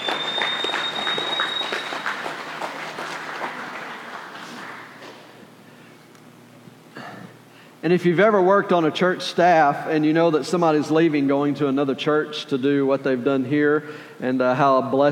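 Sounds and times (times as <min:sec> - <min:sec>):
applause: 0:00.0 - 0:05.3
speech: 0:07.8 - 0:15.0.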